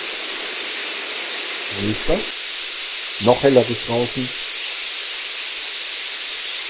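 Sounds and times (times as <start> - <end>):
loud noise generator hiss: 0.0 - 6.6
speech: 1.7 - 2.4, 3.2 - 4.5.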